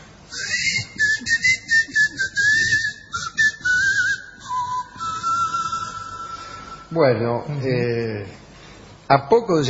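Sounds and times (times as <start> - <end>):
islanders whistling instead of speaking: 0.3 - 7.0
speech: 7.0 - 8.4, 9.1 - 9.6.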